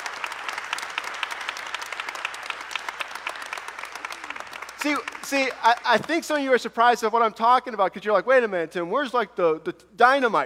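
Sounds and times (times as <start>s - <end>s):
audience applause at New Life: 0.0s - 6.4s
speech: 4.8s - 10.4s.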